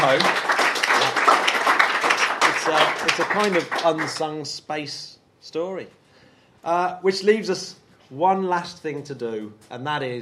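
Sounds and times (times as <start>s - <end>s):
speech: 0.0s - 0.5s, 2.7s - 6.0s, 6.6s - 10.2s
round of applause: 0.0s - 4.4s.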